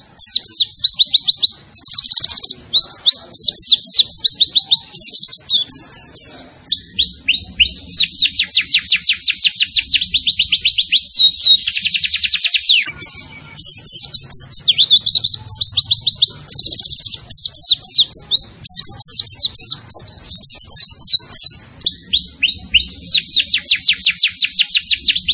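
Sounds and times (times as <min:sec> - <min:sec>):
white-eye chirping song: 0:00.0 - 0:25.3.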